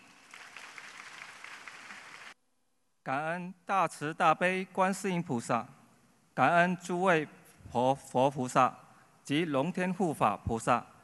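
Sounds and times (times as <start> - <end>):
audience applause: 0.0 - 2.4
speech: 3.1 - 5.8, 6.4 - 10.9.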